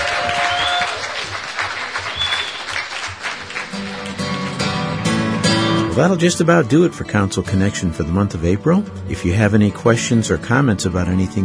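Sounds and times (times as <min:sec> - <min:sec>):
warm round of applause: 0:00.0 - 0:05.0
faint whistles: 0:02.1 - 0:02.8
speech: 0:06.0 - 0:11.4.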